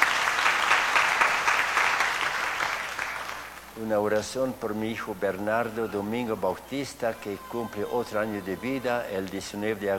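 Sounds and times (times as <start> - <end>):
audience applause: 0.0 - 3.6
speech: 3.8 - 9.9.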